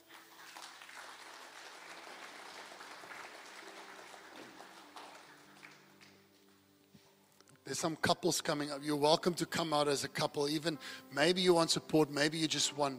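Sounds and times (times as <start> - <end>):
audience clapping: 0.0 - 6.6
speech: 7.7 - 12.9.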